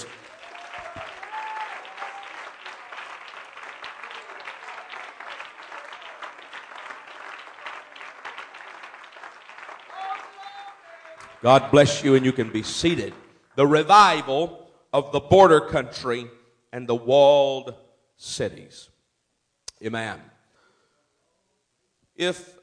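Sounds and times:
faint voices and cheers: 0:00.0 - 0:12.6
audience clapping: 0:00.0 - 0:14.3
speech: 0:11.4 - 0:18.9, 0:19.8 - 0:20.3, 0:22.2 - 0:22.6.

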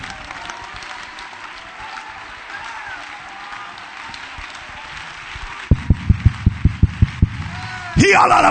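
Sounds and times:
audience clapping in unison: 0:00.0 - 0:08.0
crowd noise and voices: 0:00.0 - 0:08.4.

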